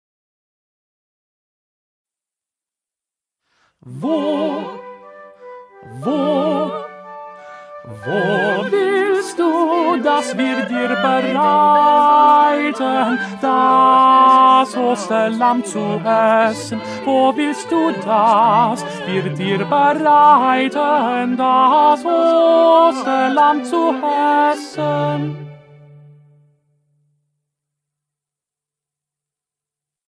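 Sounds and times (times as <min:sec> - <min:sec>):
tenor singing: 0:03.8 - 0:26.2.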